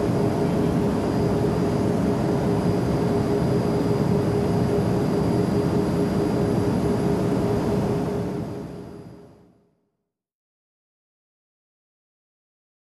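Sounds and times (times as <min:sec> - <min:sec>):
aircraft cabin ambience during takeoff: 0:00.0 - 0:08.9.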